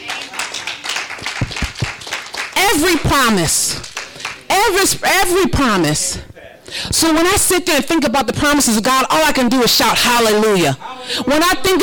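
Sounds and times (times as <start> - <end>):
hand clapping: 0.0 - 2.6, 3.8 - 4.5
speech: 2.7 - 3.9, 4.5 - 11.8.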